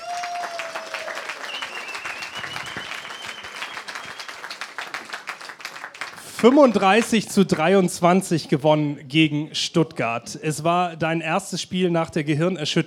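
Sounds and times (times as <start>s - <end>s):
audience applause: 0.0s - 7.2s
speech: 6.4s - 12.8s.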